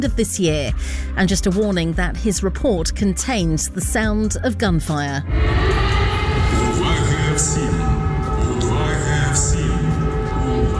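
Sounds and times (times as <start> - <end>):
speech: 0.0 - 6.0
air raid warning siren: 5.2 - 10.7.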